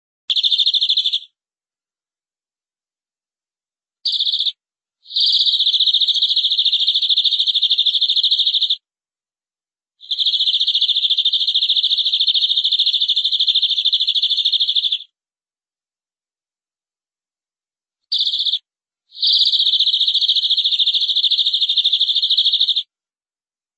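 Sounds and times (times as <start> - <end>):
canary trilling: 0.3 - 1.3, 4.1 - 8.8, 10.0 - 15.1, 18.1 - 18.6, 19.2 - 22.9.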